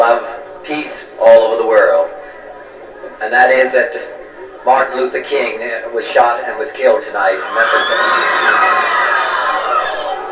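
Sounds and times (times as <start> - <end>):
speech: 0.1 - 2.2, 3.2 - 8.9
crowd screaming in shock: 7.2 - 10.3.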